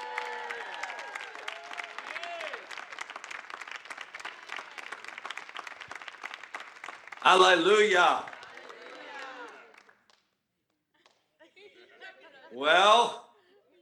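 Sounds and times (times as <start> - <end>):
audience applauding: 0.0 - 10.1
speech: 7.2 - 8.3, 12.6 - 13.2
laughter: 7.9 - 9.8, 11.4 - 13.8.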